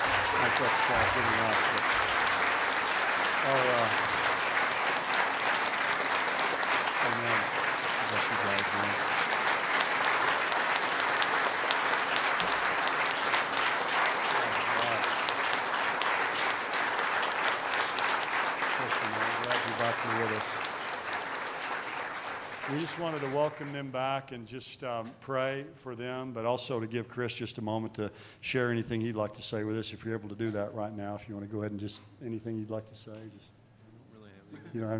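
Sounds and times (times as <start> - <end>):
audience applause: 0.0 - 23.8
speech: 0.5 - 2.4, 3.4 - 4.2, 7.1 - 9.1, 22.7 - 33.6, 34.7 - 34.9.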